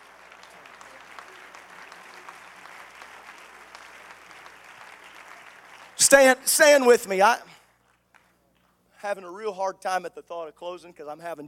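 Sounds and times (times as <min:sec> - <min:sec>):
audience clapping hands in sustained dense applause: 0:00.0 - 0:06.4
speech: 0:06.0 - 0:07.5, 0:09.0 - 0:11.4.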